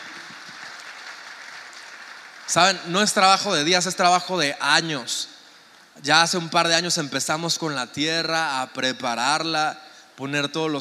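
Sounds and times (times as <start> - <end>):
audience applause: 0.0 - 2.8
speech: 2.5 - 5.3, 6.0 - 10.7.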